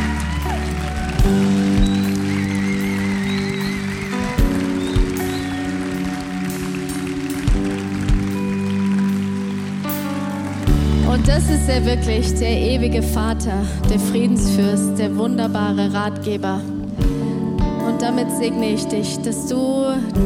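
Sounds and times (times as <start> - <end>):
audience applause: 0.0 - 11.3
speech: 1.2 - 1.6, 11.3 - 16.7, 18.0 - 20.2.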